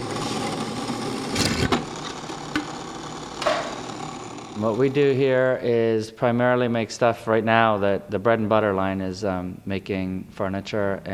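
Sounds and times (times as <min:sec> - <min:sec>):
drilling machine running: 0:00.0 - 0:05.6
speech: 0:04.6 - 0:11.1.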